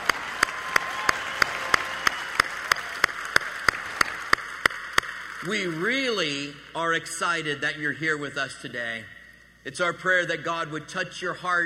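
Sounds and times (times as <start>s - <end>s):
audience applause: 0.0s - 6.4s
speech: 5.4s - 11.6s.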